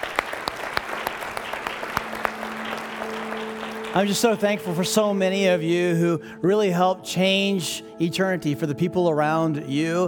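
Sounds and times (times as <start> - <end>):
crowd applause: 0.0 - 5.0
speech: 3.9 - 10.0.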